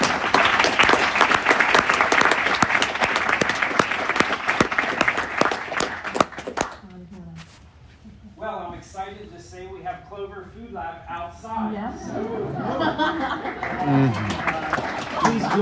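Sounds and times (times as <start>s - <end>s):
audience applause for panelists: 0.0s - 6.8s, 12.9s - 15.6s
speech: 10.2s - 14.4s
laughter: 11.9s - 15.6s.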